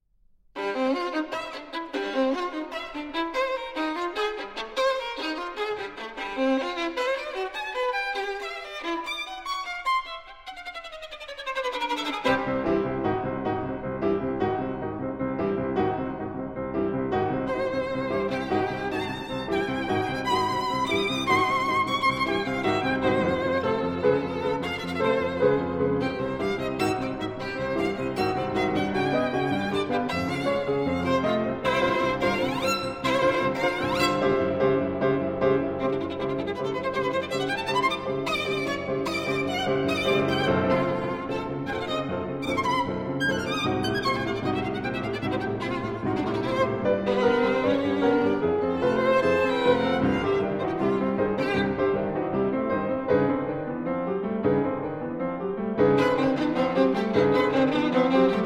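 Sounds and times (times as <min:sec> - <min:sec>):
jazz-feeling tango dance music: 0:00.6 - 0:58.4.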